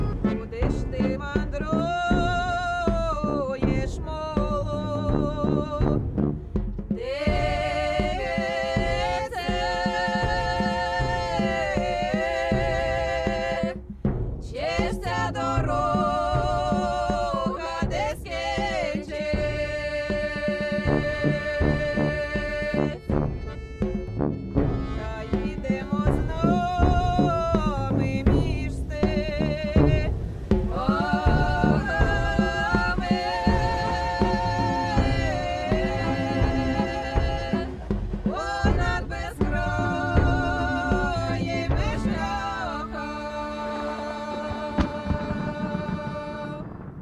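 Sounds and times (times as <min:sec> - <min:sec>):
Ukrainian folk singers singing: 0:00.1 - 0:06.2, 0:06.9 - 0:23.6, 0:24.7 - 0:46.8.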